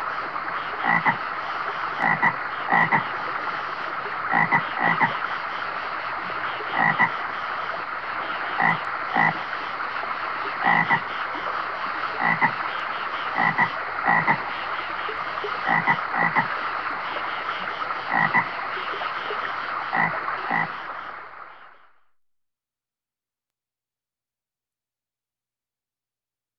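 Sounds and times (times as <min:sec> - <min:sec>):
stream flowing: 0:00.0 - 0:21.8
bullfrog croaking: 0:00.6 - 0:01.2, 0:02.0 - 0:03.2, 0:04.2 - 0:05.3, 0:06.5 - 0:07.4, 0:08.3 - 0:09.5, 0:10.5 - 0:11.3, 0:12.2 - 0:14.6, 0:15.5 - 0:16.6, 0:17.3 - 0:18.6, 0:19.9 - 0:20.9.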